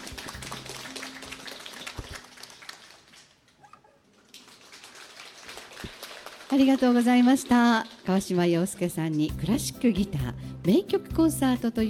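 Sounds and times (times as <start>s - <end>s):
audience applause: 0.0s - 3.5s, 4.1s - 8.1s
speech: 6.5s - 11.8s.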